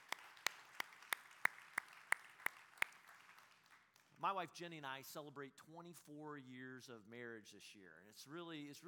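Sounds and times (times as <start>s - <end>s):
hand clapping: 0.0s - 4.1s
speech: 4.2s - 8.8s.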